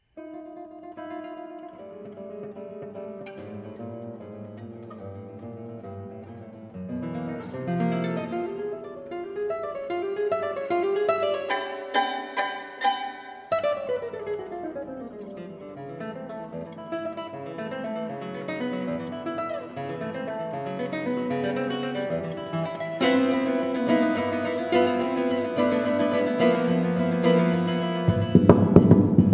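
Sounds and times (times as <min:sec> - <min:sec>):
guitar: 0:00.0 - 0:29.3.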